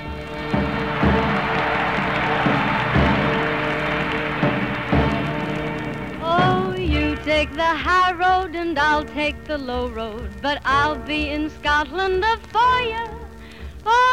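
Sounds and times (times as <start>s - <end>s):
audience applause: 0.0s - 7.2s
sustained musical tones: 0.0s - 11.4s
speech: 7.4s - 13.2s, 13.8s - 14.1s.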